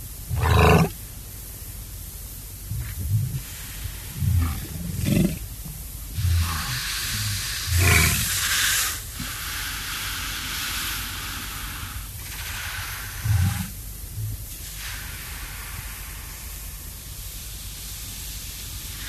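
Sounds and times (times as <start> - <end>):
walrus bellowing: 0.2 - 1.0, 2.6 - 8.9, 13.2 - 14.4.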